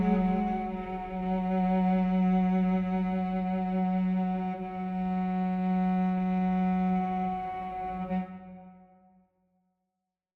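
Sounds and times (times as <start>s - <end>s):
cello sustained notes: 0.0s - 8.3s.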